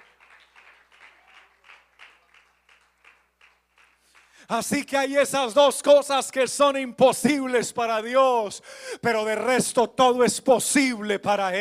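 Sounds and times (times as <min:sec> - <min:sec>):
audience applauding: 0:00.0 - 0:04.4
speech: 0:04.5 - 0:11.6.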